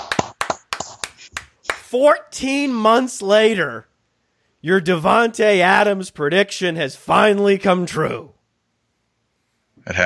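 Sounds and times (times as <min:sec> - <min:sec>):
applause: 0:00.0 - 0:01.9
speech: 0:01.9 - 0:03.9, 0:04.6 - 0:08.4, 0:09.8 - 0:10.0.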